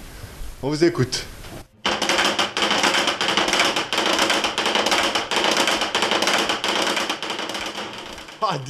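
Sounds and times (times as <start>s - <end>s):
speech: 0.6s - 1.4s, 8.5s - 8.6s
giant wooden clapper replacing church bells rattling: 1.8s - 8.6s.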